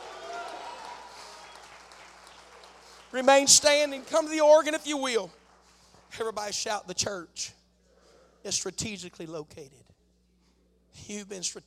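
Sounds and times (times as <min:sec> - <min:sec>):
audience clapping: 0:00.0 - 0:06.5
speech: 0:03.1 - 0:05.4, 0:06.1 - 0:07.6, 0:08.4 - 0:09.9, 0:11.0 - 0:11.6.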